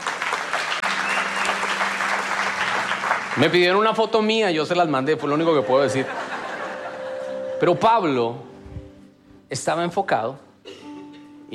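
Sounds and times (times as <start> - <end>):
applause: 0.0 - 4.5
speech: 3.4 - 6.2, 7.6 - 8.5, 9.5 - 10.5
laughter: 5.1 - 7.6.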